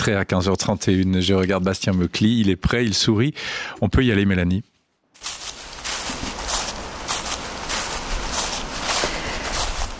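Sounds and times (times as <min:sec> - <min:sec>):
speech: 0:00.0 - 0:05.4
footsteps crunching through dead autumn leaves: 0:05.2 - 0:09.9.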